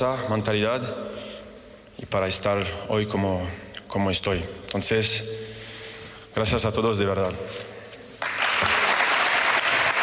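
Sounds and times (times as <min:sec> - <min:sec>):
speech: 0:00.0 - 0:01.1, 0:02.0 - 0:05.5, 0:06.4 - 0:07.7
applause for Karim Benzema after his farewell speech: 0:08.2 - 0:10.0.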